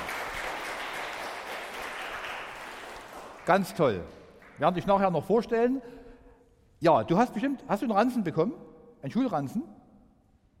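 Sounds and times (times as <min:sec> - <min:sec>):
audience applause for a child starting school: 0:00.0 - 0:04.5
speech: 0:03.5 - 0:06.0, 0:06.8 - 0:09.8.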